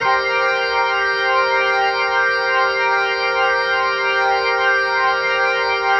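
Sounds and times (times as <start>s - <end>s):
organ chord progression loops: 0.0s - 5.9s.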